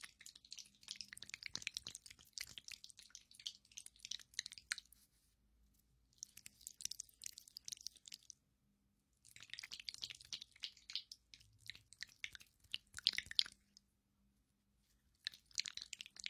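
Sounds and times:
sticky aloe gel squished and massaged: 0.0s - 5.0s, 6.2s - 8.4s, 9.2s - 13.9s, 15.2s - 16.2s.

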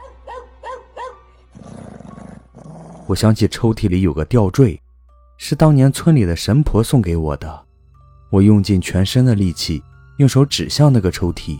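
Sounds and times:
dog barking furiously: 0.0s - 1.3s
dog harsh rapid continuous snarling growl: 1.5s - 3.2s
speech: 3.1s - 4.8s, 5.4s - 7.6s, 8.3s - 11.5s.

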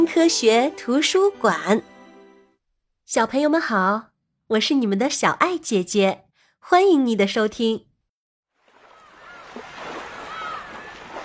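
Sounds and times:
speech: 0.0s - 1.9s, 3.1s - 7.9s
waves on beach: 8.6s - 11.2s
seagulls calling: 8.8s - 11.2s.

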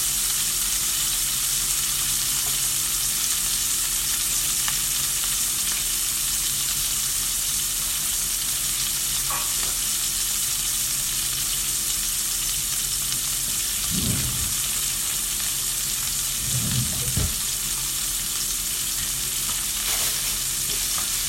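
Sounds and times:
chicken breast pan-frying: 0.0s - 21.2s
pan or utensil knocks and scrapes: 13.8s - 14.7s, 16.4s - 17.5s
low hum: 13.8s - 14.8s.

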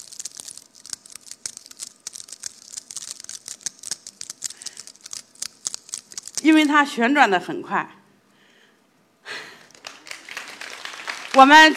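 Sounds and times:
foley of a raw egg shell and membrane being peeled: 0.0s - 6.9s
speech: 6.4s - 8.0s, 11.4s - 11.7s.

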